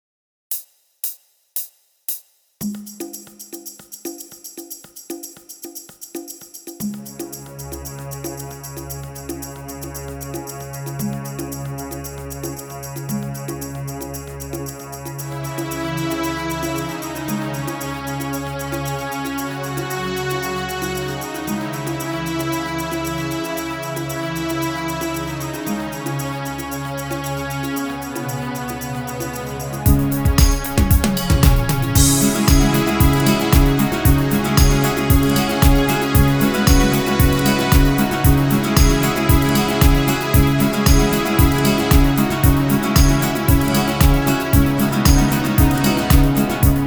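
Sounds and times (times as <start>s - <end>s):
guitar: 15.4s - 46.8s.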